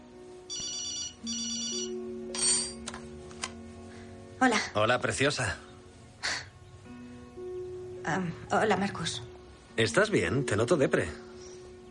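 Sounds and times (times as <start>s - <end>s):
telephone ringing with electronic tones: 0.5s - 2.8s
speech: 4.4s - 5.7s, 8.1s - 11.2s.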